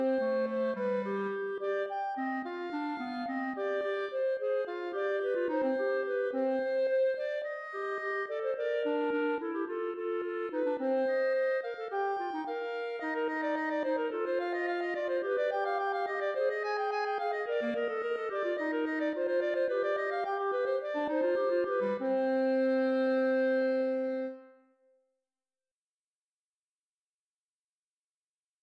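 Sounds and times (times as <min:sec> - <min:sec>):
fantasia clarinet duet: 0:00.0 - 0:24.9.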